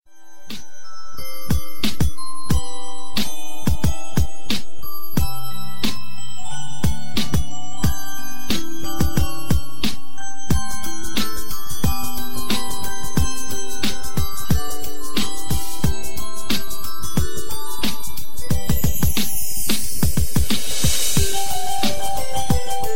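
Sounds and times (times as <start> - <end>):
Christmas bells: 0.1 - 22.9
music beat: 0.3 - 22.9.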